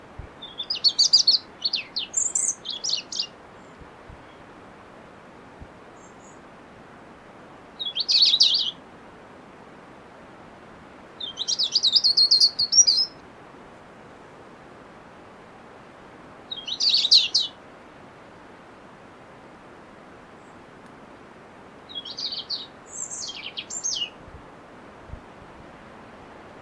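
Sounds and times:
soft hiss: 0:00.0 - 0:26.6
European robin singing: 0:00.4 - 0:04.5, 0:06.0 - 0:06.4, 0:07.8 - 0:08.8, 0:11.2 - 0:13.2, 0:16.5 - 0:17.6, 0:21.9 - 0:24.2.

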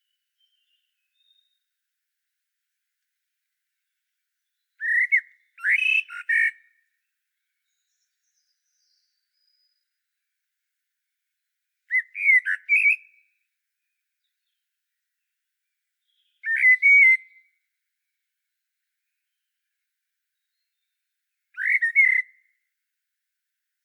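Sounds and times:
common blackbird singing fluty phrases: 0:00.0 - 0:01.6, 0:04.5 - 0:06.8, 0:07.6 - 0:10.0, 0:11.9 - 0:13.4, 0:16.0 - 0:17.5, 0:20.4 - 0:22.5.

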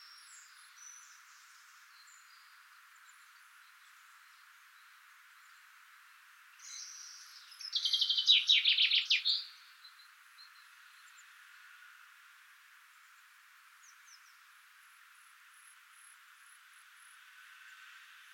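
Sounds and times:
common chaffinch Fringilla coelebs song trill with a flourish: 0:00.0 - 0:11.3.

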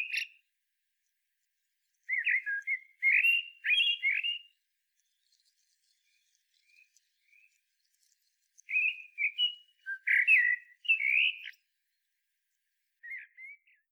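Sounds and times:
common blackbird singing fluted warbling whistles: 0:00.0 - 0:00.4, 0:02.1 - 0:04.6, 0:08.7 - 0:11.6, 0:13.0 - 0:13.9.

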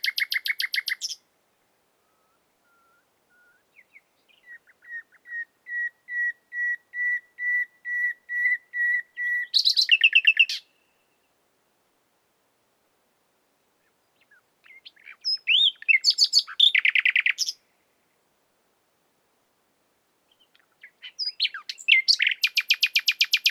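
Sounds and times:
common nightingale Luscinia megarhynchos singing: 0:00.0 - 0:01.3, 0:02.0 - 0:11.4, 0:13.8 - 0:17.8, 0:20.3 - 0:23.4.

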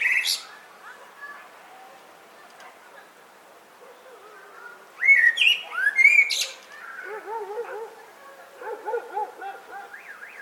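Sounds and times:
Common blackbird (Turdus merula) singing: 0:00.0 - 0:00.5, 0:03.9 - 0:08.0, 0:08.6 - 0:10.4.

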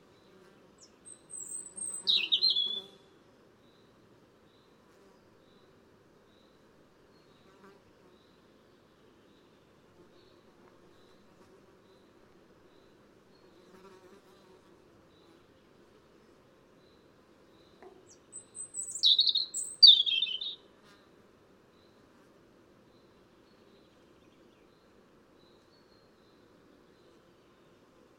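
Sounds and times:
European robin (Erithacus rubecula) song with high warbled phrases: 0:01.1 - 0:02.9, 0:18.1 - 0:20.6.

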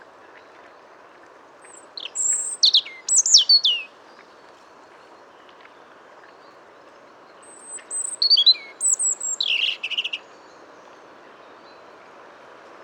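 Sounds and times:
European robin singing: 0:02.0 - 0:03.9, 0:07.9 - 0:10.2.

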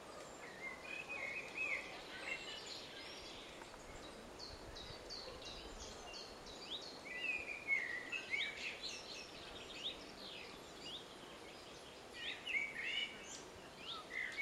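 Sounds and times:
Eurasian blackbird Turdus merula giving short chirped and warbled notes: 0:00.2 - 0:14.3.

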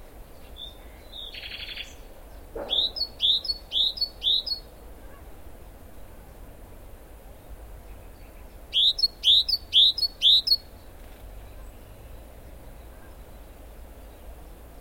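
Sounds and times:
common nightingale song: 0:00.2 - 0:04.8, 0:07.8 - 0:14.7.

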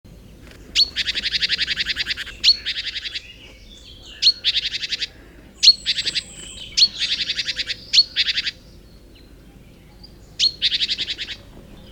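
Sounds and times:
great tit churring calls: 0:00.6 - 0:08.6.

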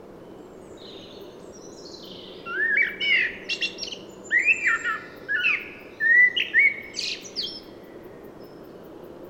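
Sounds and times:
common blackbird Turdus merula singing: 0:01.8 - 0:07.7.

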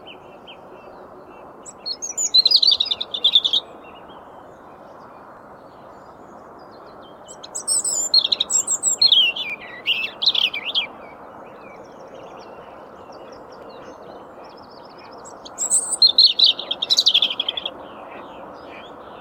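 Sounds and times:
European robin singing: 0:01.6 - 0:04.1, 0:07.1 - 0:10.9, 0:11.5 - 0:18.9.

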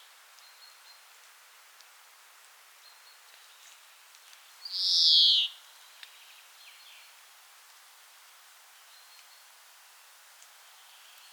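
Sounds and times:
European greenfinch Chloris chloris call: 0:04.7 - 0:05.6.

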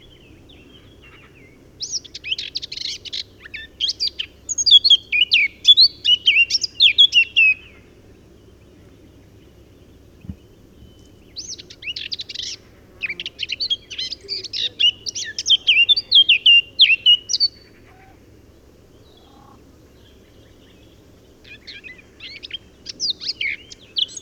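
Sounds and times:
Eurasian blackcap singing: 0:00.0 - 0:07.8, 0:10.2 - 0:17.7, 0:20.5 - 0:24.2.

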